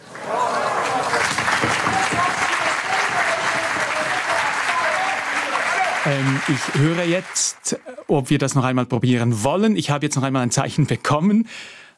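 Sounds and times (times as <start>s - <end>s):
crowd applauding in a hall in Germany as a space probe's last signal arrives: 0.0s - 8.7s
speech: 6.1s - 11.8s.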